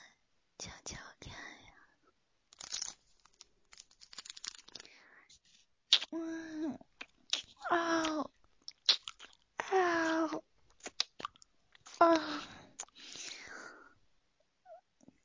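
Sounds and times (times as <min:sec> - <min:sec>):
lollipop being chewed and eaten: 0:05.9 - 0:06.1, 0:06.9 - 0:13.2.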